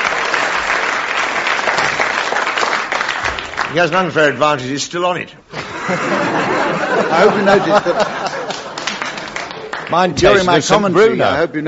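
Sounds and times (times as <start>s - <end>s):
audience clapping: 0.0s - 4.6s, 7.0s - 10.9s
speech: 3.7s - 8.4s, 9.9s - 11.6s
laughter: 5.5s - 10.6s.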